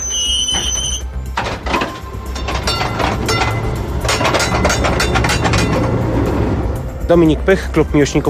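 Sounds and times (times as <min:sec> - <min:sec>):
tram wheel squeal: 0:00.0 - 0:05.9
vintage type N tram from 1949 rumbling on rails in Warsaw: 0:00.0 - 0:08.2
speech: 0:07.1 - 0:08.2.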